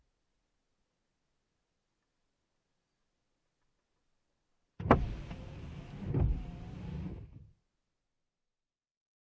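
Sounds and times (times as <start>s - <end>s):
car interior windshield wipers on low: 4.8s - 7.5s.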